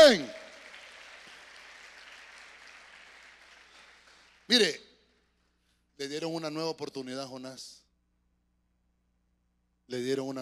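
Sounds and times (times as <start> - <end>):
audience applause: 0.0 - 4.5
speech: 0.1 - 0.4, 4.5 - 4.8, 6.0 - 7.8, 9.9 - 10.3.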